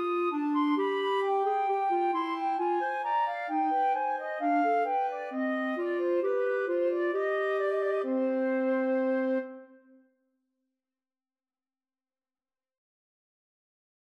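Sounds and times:
bourree flute and clarinet duet: 0.0s - 10.0s.

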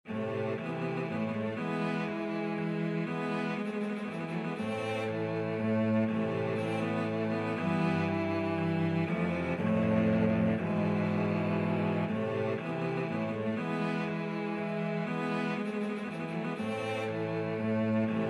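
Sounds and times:
cello quartet: 0.1s - 18.2s.

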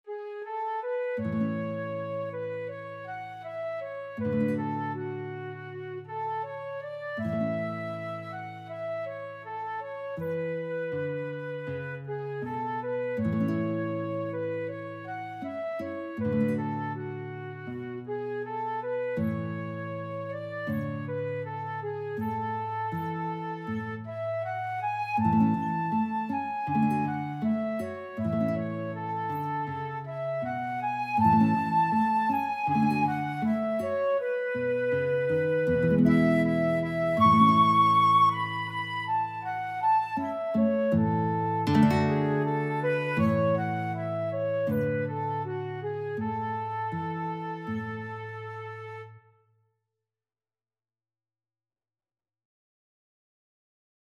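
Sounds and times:
flute: 0.0s - 49.3s
guitar: 0.5s - 49.2s.

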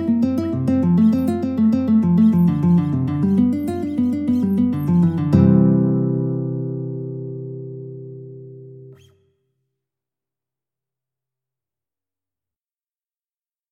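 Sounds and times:
guitar prelude: 0.0s - 9.4s.

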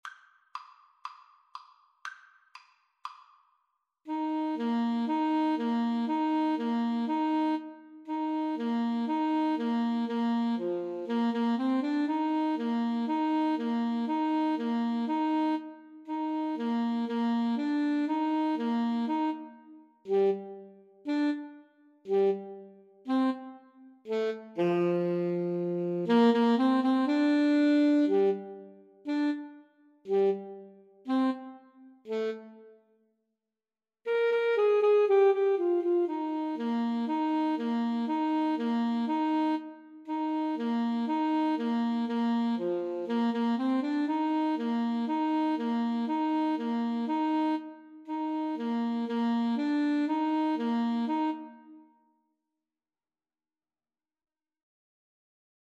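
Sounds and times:
A saxophone: 4.1s - 32.9s, 34.1s - 52.1s.

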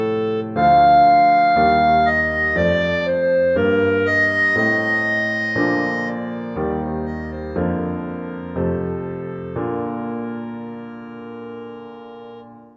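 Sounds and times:
clarinet concerto: 0.0s - 12.7s.

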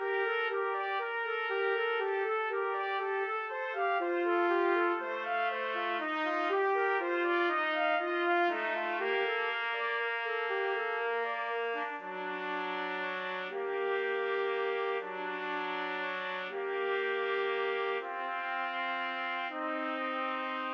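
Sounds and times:
trumpet trio playing: 0.0s - 20.7s.

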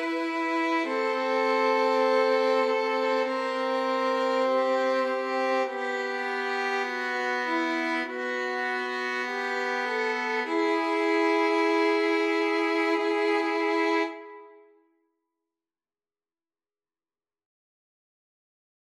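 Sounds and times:
violin trio playing an aequale: 0.0s - 14.6s.

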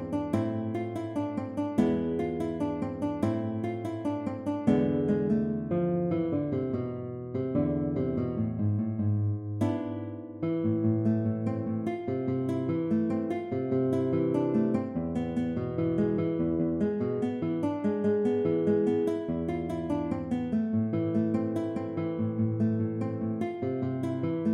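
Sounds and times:
guitar playing a women's Albanian folk dance: 0.0s - 24.5s.

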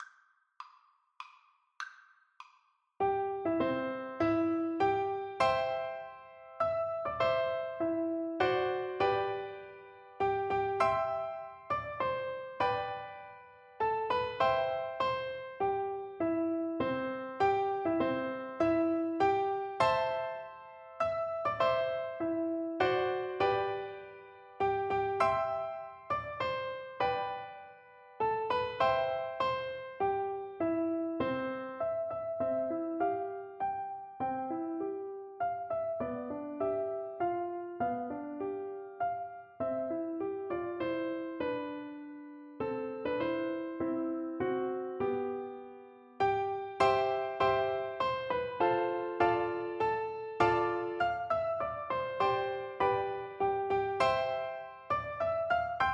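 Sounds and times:
piano duet: 3.0s - 55.9s.

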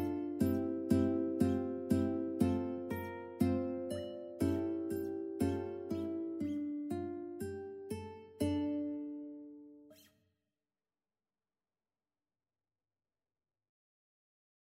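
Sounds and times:
ukulele playing a Christmas carol: 0.0s - 9.4s.

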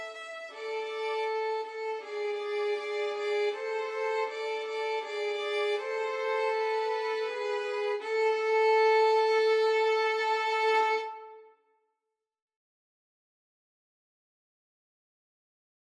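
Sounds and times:
violin trio playing: 0.0s - 11.4s.

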